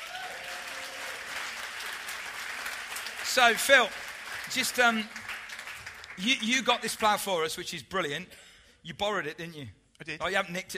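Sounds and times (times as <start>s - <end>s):
church congregation applauding to welcome a farmer: 0.0s - 7.4s
speech: 3.4s - 5.2s, 6.2s - 10.7s.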